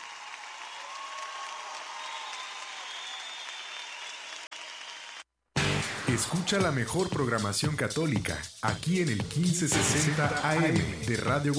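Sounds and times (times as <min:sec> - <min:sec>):
crowd applause: 0:00.0 - 0:05.2
speech: 0:06.1 - 0:11.5.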